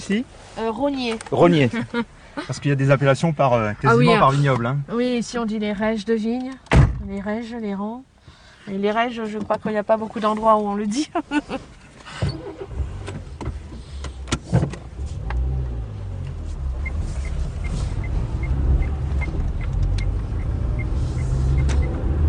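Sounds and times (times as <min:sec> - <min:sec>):
speech: 0:00.0 - 0:08.1, 0:08.7 - 0:12.4
large farm sprayer engine rumbling: 0:11.2 - 0:22.2.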